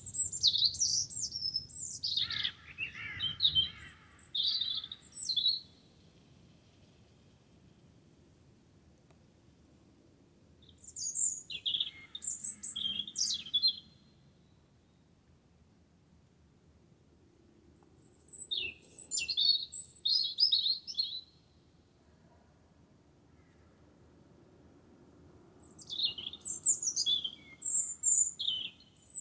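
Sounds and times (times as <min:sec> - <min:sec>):
wren singing: 0:00.0 - 0:05.8, 0:10.6 - 0:14.1, 0:18.0 - 0:21.4, 0:25.6 - 0:29.1.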